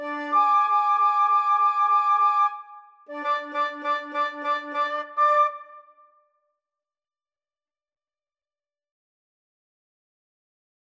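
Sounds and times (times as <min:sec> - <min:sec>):
flute duet: 0:00.0 - 0:06.2.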